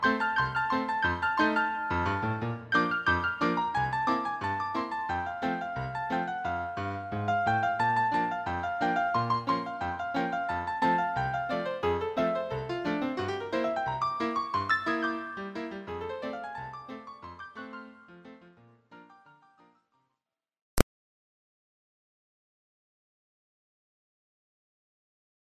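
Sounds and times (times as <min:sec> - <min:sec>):
ragtime music: 0:00.0 - 0:19.2.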